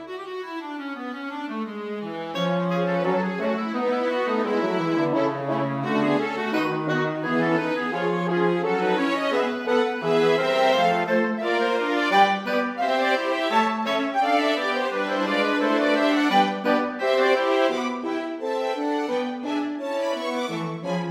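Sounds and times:
small orchestra playing a gavotte: 0.0 - 21.0.

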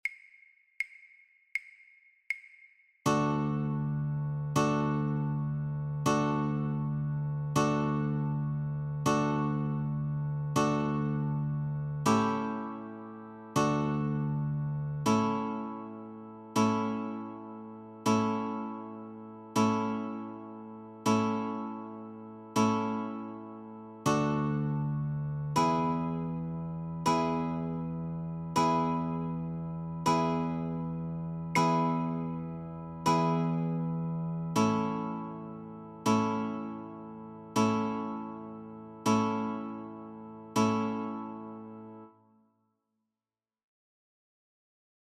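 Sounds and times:
guitar chords: 3.1 - 42.0.

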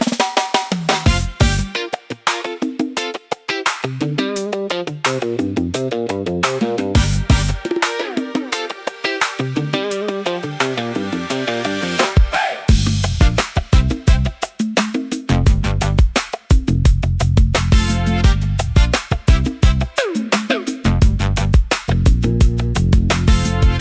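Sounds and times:
bamboo percussion groove: 0.0 - 23.7.

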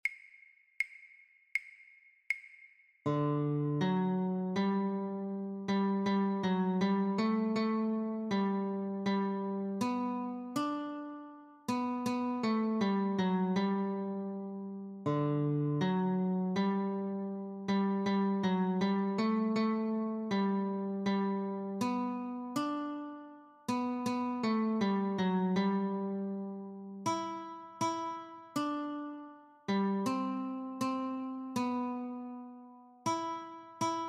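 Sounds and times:
guitar notes: 3.1 - 34.0.

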